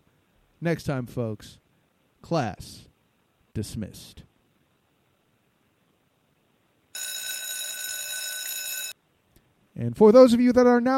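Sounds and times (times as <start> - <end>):
speech: 0.6 - 1.6, 2.2 - 2.9, 3.6 - 4.3, 9.8 - 10.9
electric bell ringing: 7.0 - 9.0.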